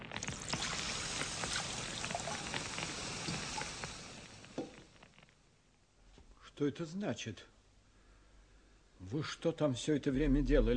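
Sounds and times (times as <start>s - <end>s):
bucket of water poured on straw: 0.0s - 5.0s
speech: 6.6s - 7.5s, 9.1s - 10.7s.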